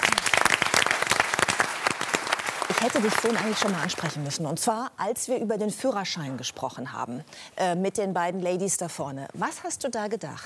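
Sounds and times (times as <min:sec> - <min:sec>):
audience applause: 0:00.0 - 0:04.3
speech: 0:02.8 - 0:10.4.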